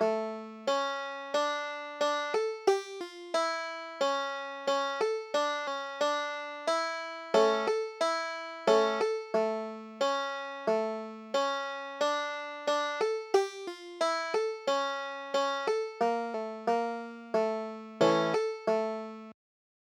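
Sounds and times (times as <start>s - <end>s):
banjo playing klezmer tune: 0.0s - 19.3s.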